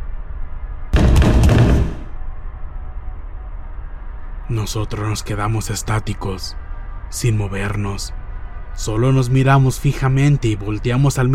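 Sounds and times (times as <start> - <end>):
heavy knocks on a door: 1.0 - 2.2
speech: 4.5 - 8.2, 8.8 - 11.3.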